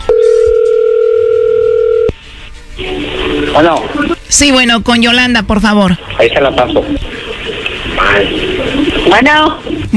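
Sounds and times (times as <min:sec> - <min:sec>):
telephone dial tone as a call is about to be dialed: 0:00.1 - 0:02.1
speech: 0:03.6 - 0:07.2, 0:08.0 - 0:09.9.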